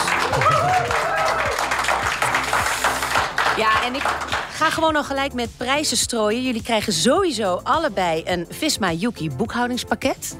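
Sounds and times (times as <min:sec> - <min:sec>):
audience applause: 0:00.0 - 0:04.6
speech: 0:03.6 - 0:10.3.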